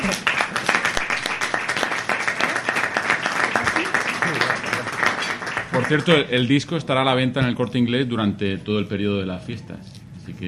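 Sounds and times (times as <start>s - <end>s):
crowd applause: 0.0s - 6.2s
speech: 5.8s - 10.4s.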